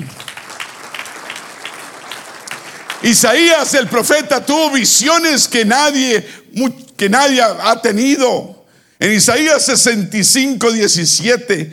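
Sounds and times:
audience applause: 0:00.0 - 0:03.8
speech: 0:03.0 - 0:11.7.

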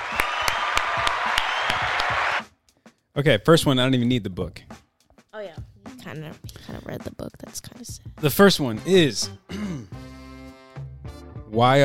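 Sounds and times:
crowd applause: 0:00.0 - 0:02.4
sharp rhythmic claps: 0:00.0 - 0:02.5
speech: 0:03.2 - 0:04.8, 0:06.2 - 0:09.4, 0:11.6 - 0:11.8.

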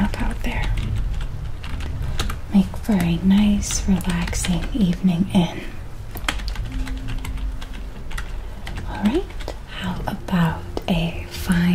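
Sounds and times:
low hum: 0:00.0 - 0:11.7
fingers typing on a computer keyboard: 0:00.1 - 0:05.1, 0:06.1 - 0:09.6
speech: 0:02.6 - 0:05.8.

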